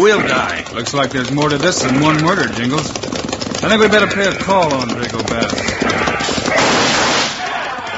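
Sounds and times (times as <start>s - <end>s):
speech: 0.0s - 6.1s
gunfire in town: 5.8s - 7.8s.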